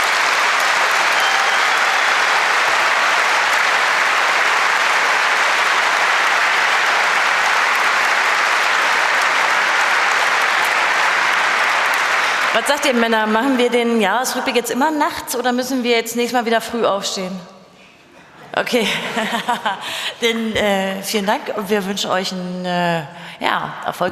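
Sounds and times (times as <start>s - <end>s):
audience applause: 0.0s - 13.6s
speech: 12.6s - 17.5s, 18.6s - 24.1s
laughter: 18.2s - 20.3s.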